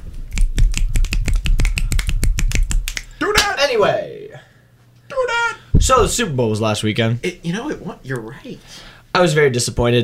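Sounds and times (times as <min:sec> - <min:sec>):
finger snapping: 0:00.6 - 0:03.1
speech: 0:03.7 - 0:04.1, 0:05.9 - 0:10.0.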